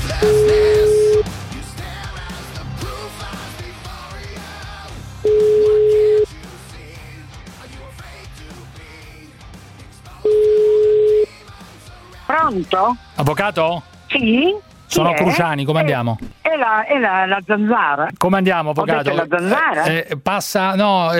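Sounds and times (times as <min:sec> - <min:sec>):
phone line ringing: 0:00.2 - 0:01.2, 0:05.2 - 0:06.3, 0:10.3 - 0:11.3
speech: 0:12.6 - 0:21.1.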